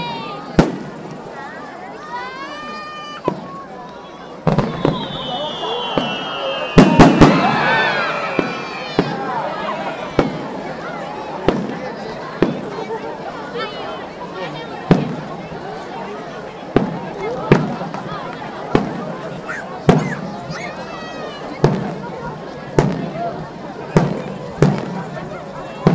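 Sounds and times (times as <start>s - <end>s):
fireworks exploding at a festival: 0.3s - 1.4s, 3.2s - 3.6s, 4.4s - 12.8s, 14.8s - 15.9s, 16.7s - 20.3s, 21.5s - 25.9s.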